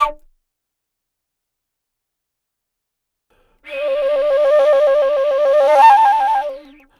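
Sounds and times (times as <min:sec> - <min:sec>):
Asian wood flute: 0:03.6 - 0:06.9.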